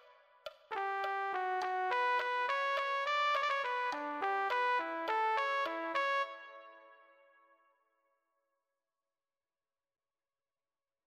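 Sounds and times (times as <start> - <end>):
trumpet: 0.0 - 7.5.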